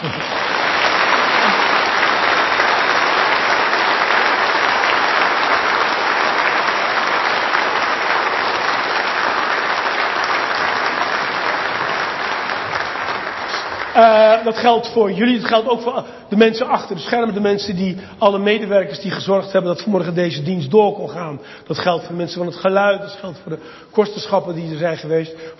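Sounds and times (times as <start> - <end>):
audience applause: 0.0 - 15.0
speech: 14.0 - 25.5.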